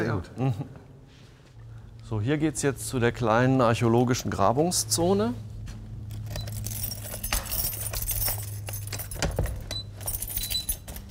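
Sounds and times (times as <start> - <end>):
speech: 0.0 - 0.8, 2.1 - 5.5
keys jangling as a museum door beneath a castle in Marburg is unlocked: 6.0 - 11.0.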